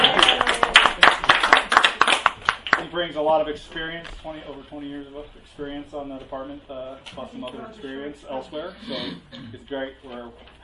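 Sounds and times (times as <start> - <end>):
small group clapping to welcome a new officer: 0.0 - 3.1
speech: 3.0 - 10.6.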